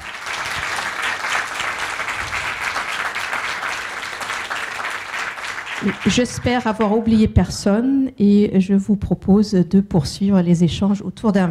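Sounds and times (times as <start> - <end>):
audience applause: 0.0 - 7.0
speech: 5.8 - 11.4.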